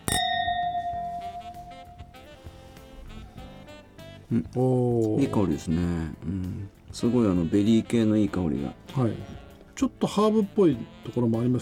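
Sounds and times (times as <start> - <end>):
glasses clinking in a toast: 0.0 - 2.5
speech: 4.3 - 11.6.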